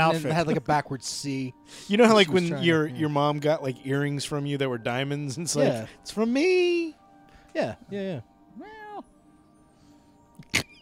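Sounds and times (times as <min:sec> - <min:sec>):
speech: 0:00.0 - 0:08.8
person imitating a cat meow: 0:08.6 - 0:09.1.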